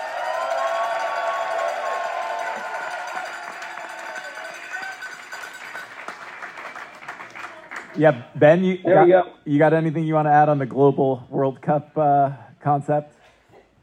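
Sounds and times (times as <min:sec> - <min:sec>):
audience applause for Gus: 0:00.0 - 0:08.2
speech: 0:08.0 - 0:13.2.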